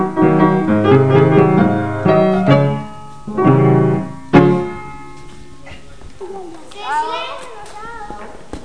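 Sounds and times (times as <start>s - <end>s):
piano: 0.0s - 6.0s.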